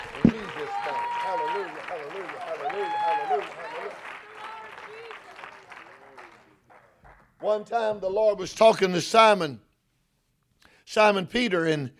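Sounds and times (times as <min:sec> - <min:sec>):
audience clapping hands: 0:00.0 - 0:07.8
speech: 0:07.5 - 0:09.7, 0:10.9 - 0:11.9.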